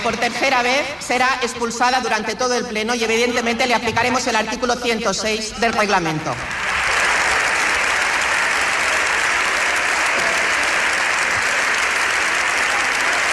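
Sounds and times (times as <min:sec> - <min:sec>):
speech: 0:00.0 - 0:06.7
applause from deputies in parliament: 0:06.4 - 0:13.3.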